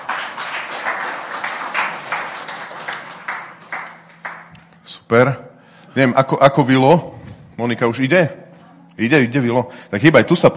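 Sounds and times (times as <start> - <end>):
audience applause: 0.0 - 4.5
speech: 5.1 - 5.4, 6.0 - 8.4, 9.0 - 10.5.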